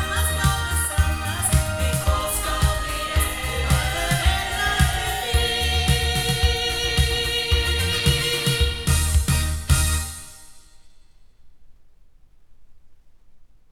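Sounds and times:
loudspeakers and microphones: 0.0 - 10.2.

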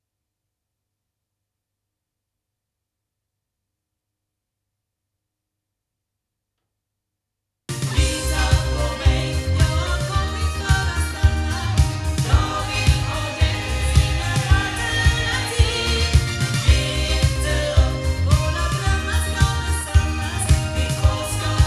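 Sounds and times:
loudspeakers: 7.8 - 21.6.

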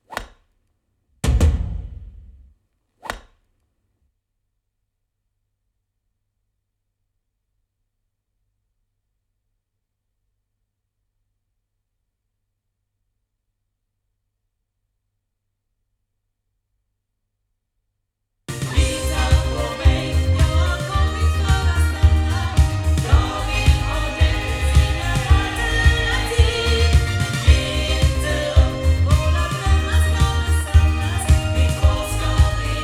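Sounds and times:
sound from loudspeakers: 18.5 - 32.8.

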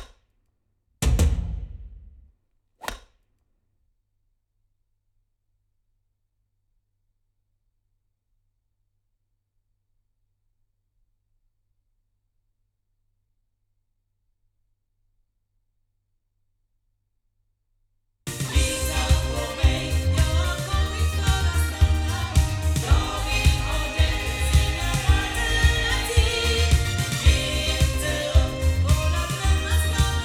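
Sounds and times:
loudspeakers: 18.3 - 30.2.

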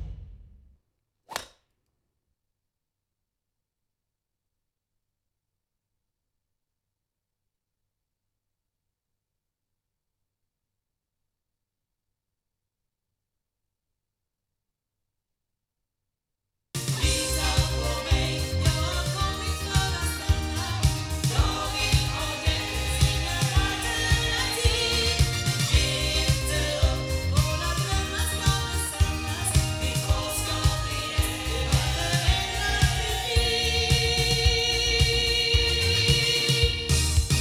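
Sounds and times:
Generis GT2 Mk2 8 loudspeakers: 16.9 - 37.2.

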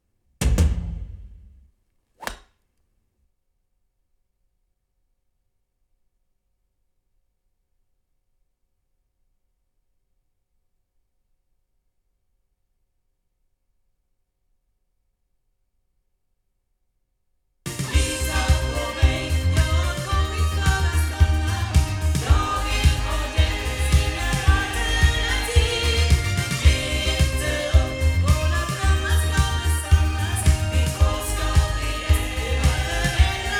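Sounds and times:
loudspeakers: 17.7 - 33.5.

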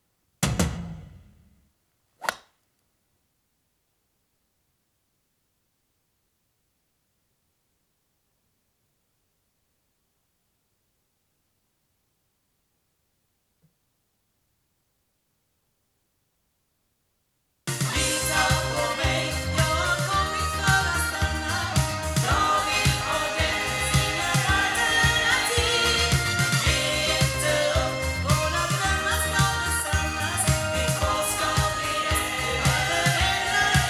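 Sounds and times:
loudspeakers: 17.7 - 33.8.

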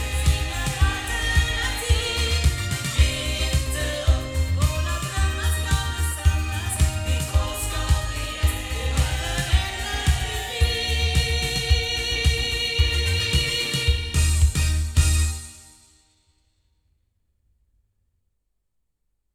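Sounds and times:
loudspeakers: 0.0 - 15.3.

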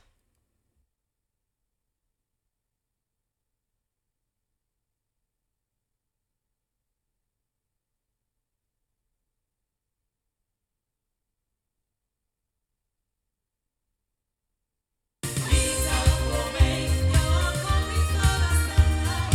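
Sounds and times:
loudspeakers recorded with MXL 603S microphone: 15.3 - 19.3.

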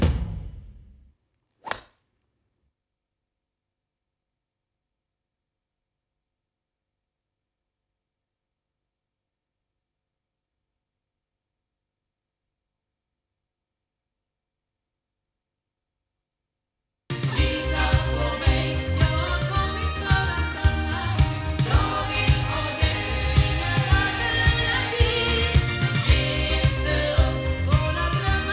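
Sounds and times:
sound from back loudspeakers: 17.2 - 28.5.

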